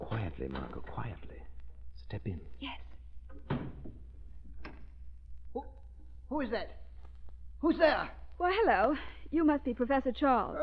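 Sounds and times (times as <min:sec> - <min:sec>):
speech: 0:00.4 - 0:01.4, 0:02.0 - 0:03.8, 0:05.5 - 0:06.8, 0:07.6 - 0:10.6
door being unlocked and opened, radio drama effect: 0:03.3 - 0:04.0.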